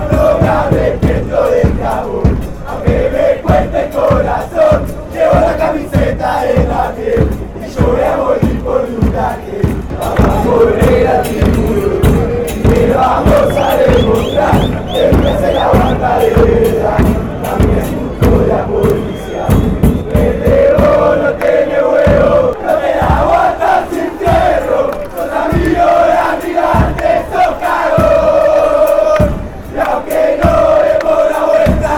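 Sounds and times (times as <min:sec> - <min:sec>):
fans chanting in Argentina: 0:00.0 - 0:31.9.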